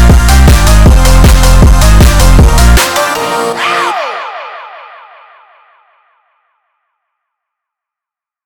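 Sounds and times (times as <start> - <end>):
phonk music: 0.0 - 6.0.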